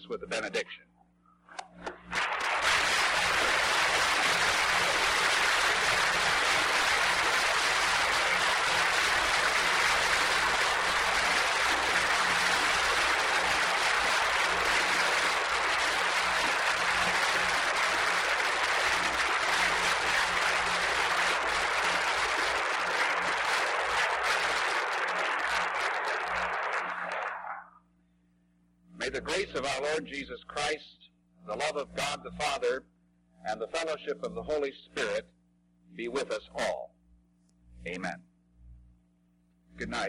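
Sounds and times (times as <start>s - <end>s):
speech: 0.1s - 0.9s, 29.9s - 30.9s, 31.5s - 35.3s, 36.0s - 36.9s, 37.8s - 38.3s, 39.8s - 40.0s
audience applauding: 2.0s - 27.6s.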